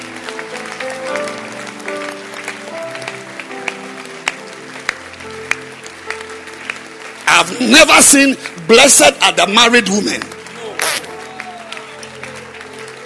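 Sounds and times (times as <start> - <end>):
church audience clapping in a standing ovation: 0.0 - 13.0
speech: 7.4 - 10.4.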